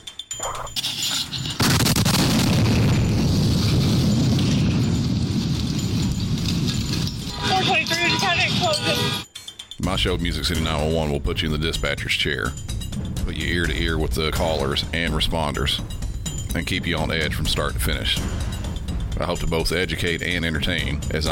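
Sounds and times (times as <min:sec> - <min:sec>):
wavering high-pitched cries or tones: 0:00.3 - 0:00.8
bomb blast: 0:01.6 - 0:08.7
speech: 0:09.9 - 0:18.5, 0:19.2 - 0:21.3.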